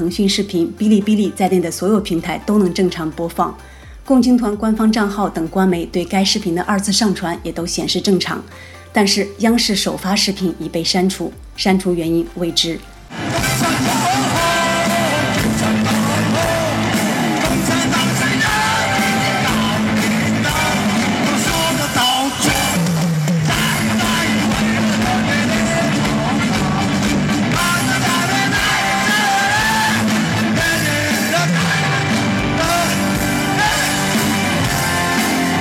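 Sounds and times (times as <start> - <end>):
speech: 0.0 - 14.0
live rock concert recording of a song: 13.1 - 35.5
raw shouted vocals: 13.2 - 35.5.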